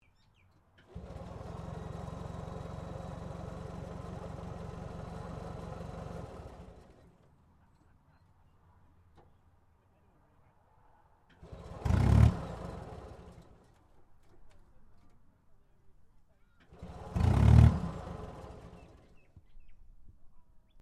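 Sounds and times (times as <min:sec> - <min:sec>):
British Centurion main battle tank secondary engine ignition failing: 0:00.8 - 0:07.2, 0:11.4 - 0:13.8, 0:16.6 - 0:19.3.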